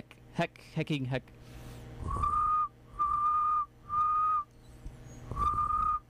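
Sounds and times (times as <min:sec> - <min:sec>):
speech: 0:00.4 - 0:02.3
person whistling high tones imitating a cricket: 0:02.0 - 0:04.5, 0:05.1 - 0:06.0.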